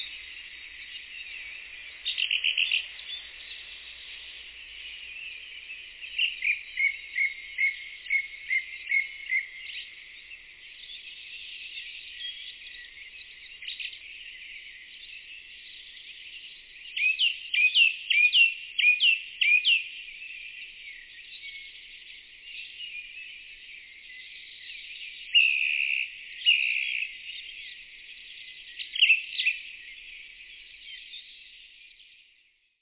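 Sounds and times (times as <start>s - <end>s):
song thrush singing: 0.0s - 32.8s.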